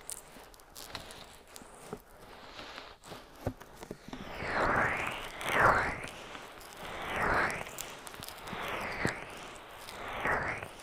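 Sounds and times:
soft clicks and faint sticky taps: 0.0 - 2.9, 5.2 - 10.8
ear massage with oil and bare hands: 0.0 - 10.8.

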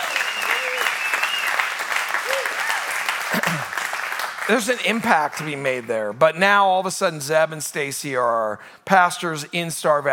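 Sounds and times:
audience applause: 0.0 - 5.4
speech: 4.5 - 10.1.

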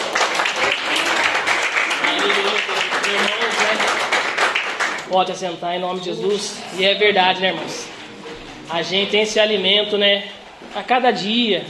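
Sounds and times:
audience applauding: 0.0 - 5.1
speech: 5.1 - 7.9, 8.7 - 11.6.

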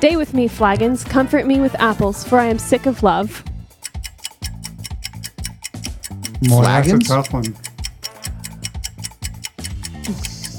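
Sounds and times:
speech: 0.0 - 3.5, 6.4 - 7.6, 10.1 - 10.3
game timer ticking: 3.6 - 10.5.

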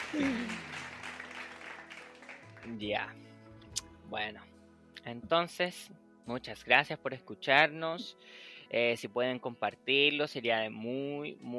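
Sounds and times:
laughter: 0.0 - 1.1
applause sound effect played by DJ: 0.0 - 3.0
speech: 0.1 - 0.5, 2.7 - 3.3, 4.1 - 11.5.

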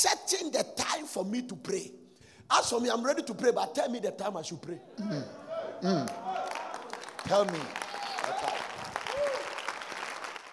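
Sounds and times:
speech: 1.2 - 6.4, 7.2 - 7.8
church congregation clapping during a sermon: 6.0 - 10.5.

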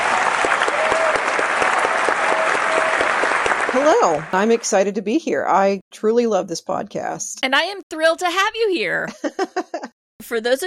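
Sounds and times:
round of applause: 0.0 - 4.7
speech: 3.8 - 10.6
laughter: 9.1 - 9.9.

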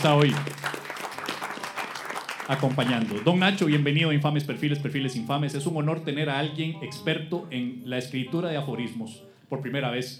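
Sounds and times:
speech: 0.0 - 0.7, 2.5 - 10.1
audience applause: 0.0 - 3.9.

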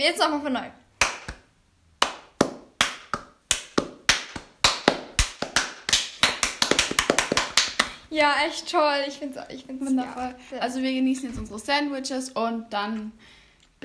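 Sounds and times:
speech: 0.0 - 0.8, 8.1 - 13.8
hand clapping as applause: 1.0 - 8.0.

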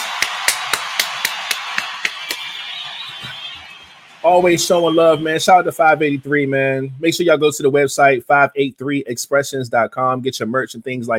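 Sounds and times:
audience round of applause: 0.0 - 5.6
speech: 4.2 - 11.1.

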